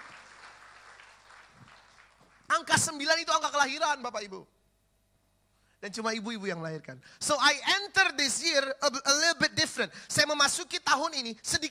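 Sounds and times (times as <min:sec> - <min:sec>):
audience clapping hands: 0:00.0 - 0:02.7
speech: 0:02.6 - 0:04.6, 0:05.8 - 0:11.6.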